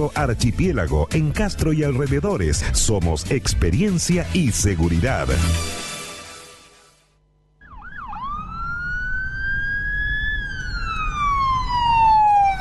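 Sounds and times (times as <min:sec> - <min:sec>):
speech: 0:00.0 - 0:05.8
ambulance siren: 0:07.6 - 0:12.6.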